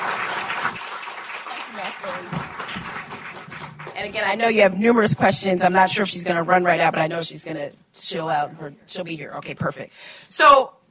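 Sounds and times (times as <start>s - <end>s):
applause: 0.0s - 4.7s
speech: 4.0s - 10.8s.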